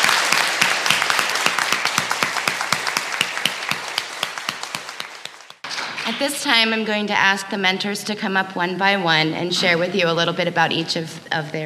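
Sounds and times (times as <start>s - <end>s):
round of applause: 0.0s - 6.1s
speech: 6.2s - 11.6s.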